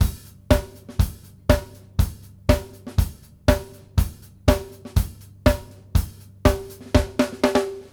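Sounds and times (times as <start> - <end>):
house beat: 0.0 - 7.9.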